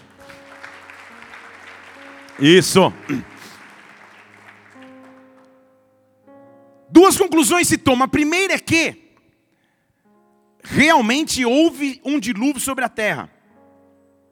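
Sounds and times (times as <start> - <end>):
audience applause: 0.0 - 5.7
speech: 2.4 - 3.3, 7.4 - 9.0, 10.8 - 13.4.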